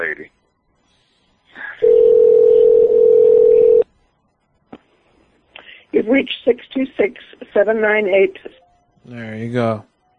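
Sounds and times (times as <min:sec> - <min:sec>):
speech: 0:00.0 - 0:00.4, 0:06.0 - 0:09.9
telephone tone after lost connection: 0:01.8 - 0:03.8.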